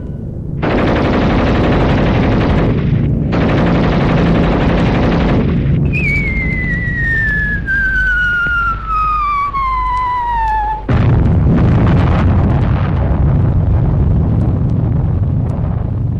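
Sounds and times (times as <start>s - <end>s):
machine-gun fire in a Second World War battle scene: 0.6s - 16.0s
drawn-out whistle falling in pitch: 5.8s - 10.9s.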